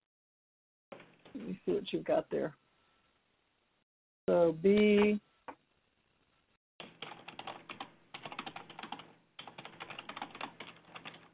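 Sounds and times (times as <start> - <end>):
speech: 1.4 - 2.6, 4.3 - 5.3
computer keyboard typing: 6.8 - 11.3.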